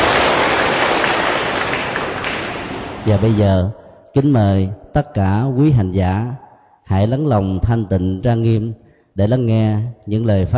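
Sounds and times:
audience applause: 0.0s - 3.4s
speech: 3.1s - 10.5s.

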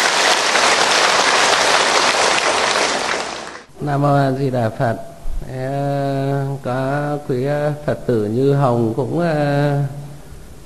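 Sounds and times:
crowd applauding: 0.0s - 3.7s
speech: 3.8s - 10.0s.

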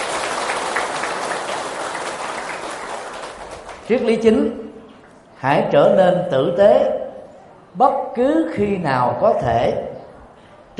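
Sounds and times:
crowd applause: 0.0s - 3.9s
speech: 3.9s - 4.6s, 5.4s - 7.0s, 7.7s - 9.9s.

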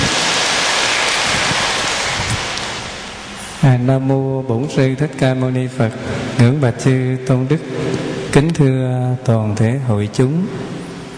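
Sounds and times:
audience applause: 0.0s - 2.8s
speech: 3.6s - 10.8s.

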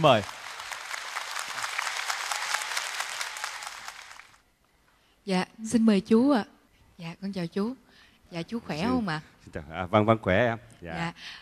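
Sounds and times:
speech: 0.0s - 0.4s, 5.3s - 11.4s
audience applause: 0.0s - 4.4s.

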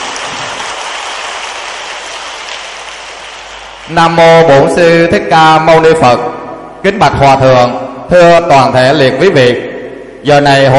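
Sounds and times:
enthusiastic applause from hall audience: 0.0s - 4.0s
speech: 3.9s - 10.7s.

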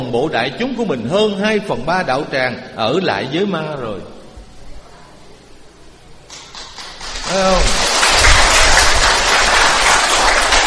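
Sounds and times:
speech: 0.1s - 4.2s, 7.3s - 7.8s
audience clapping loudly at a Buddhist gathering: 6.3s - 10.6s.

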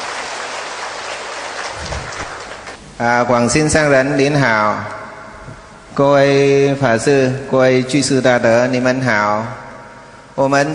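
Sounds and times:
applause: 0.0s - 2.8s
speech: 3.0s - 5.0s, 6.0s - 9.6s, 10.4s - 10.7s.

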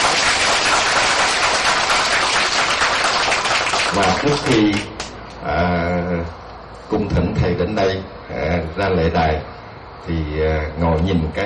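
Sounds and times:
audience applause: 0.0s - 5.1s
speech: 4.0s - 11.4s.

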